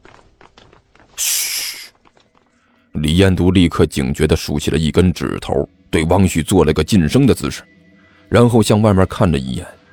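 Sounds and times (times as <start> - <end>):
disorderly hurried footsteps shuffling outside: 0.0 - 2.7
burst of hissing noise: 1.2 - 1.9
speech: 3.0 - 9.8.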